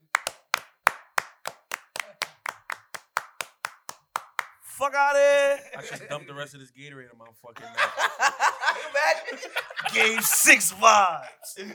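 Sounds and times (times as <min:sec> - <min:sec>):
slow clap: 0:00.0 - 0:04.7
speech: 0:04.8 - 0:11.7
laughter: 0:05.5 - 0:06.4, 0:07.6 - 0:11.7.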